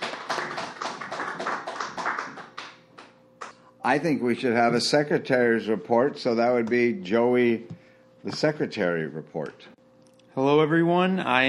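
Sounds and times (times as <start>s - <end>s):
small group applause: 0.0s - 3.6s
speech: 3.8s - 9.7s, 10.4s - 11.4s.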